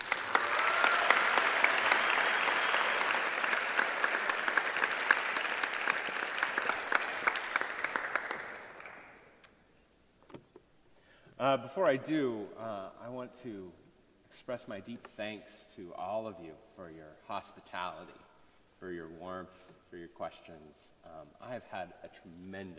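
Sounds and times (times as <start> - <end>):
audience applause at Covenant College: 0.0 - 9.2
speech: 11.5 - 13.8, 14.4 - 22.7.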